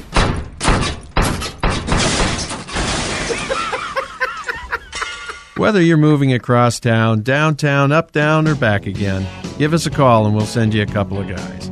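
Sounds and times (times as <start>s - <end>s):
refrigerator crashing down a flight of stairs: 0.0s - 4.0s
laughter: 3.1s - 5.7s
speech: 5.6s - 11.7s.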